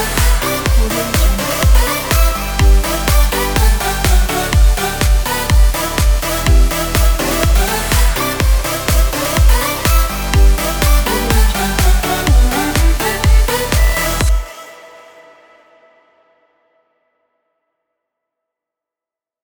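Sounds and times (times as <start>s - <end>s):
upbeat motivational pop music: 0.0s - 15.1s.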